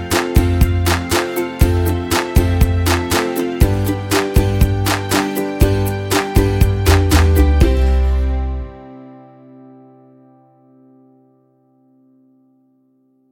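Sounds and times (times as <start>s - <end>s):
upbeat instrumental music: 0.0s - 10.0s.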